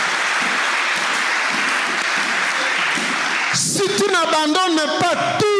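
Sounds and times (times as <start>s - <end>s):
audience applauding: 0.0s - 4.1s
speech: 3.8s - 5.5s.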